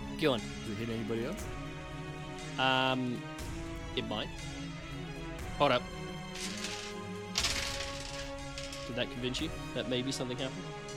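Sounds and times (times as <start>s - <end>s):
speech: 0.2s - 1.6s, 2.6s - 3.3s, 3.9s - 4.7s, 5.6s - 6.5s, 8.9s - 10.8s
dice clattering onto a hard table: 6.4s - 9.0s.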